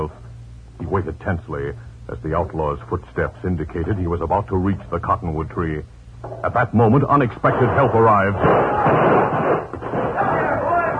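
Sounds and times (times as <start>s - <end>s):
speech: 0.8s - 10.0s
posse gunfire: 7.5s - 10.7s
people shouting: 8.6s - 10.9s.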